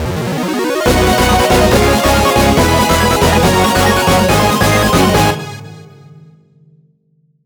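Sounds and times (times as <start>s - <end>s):
boss defeat sound: 0.9s - 6.0s.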